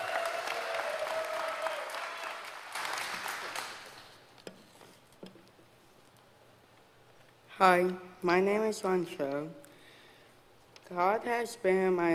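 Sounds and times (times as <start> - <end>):
audience applause: 0.0 - 4.2
speech: 7.6 - 9.6, 10.9 - 12.1.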